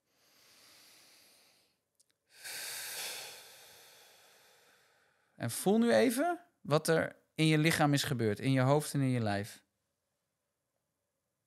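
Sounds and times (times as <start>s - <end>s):
deep breath drawn in through the nose: 0.0s - 5.4s
long exhale through the mouth: 0.0s - 5.4s
speech: 5.4s - 9.6s.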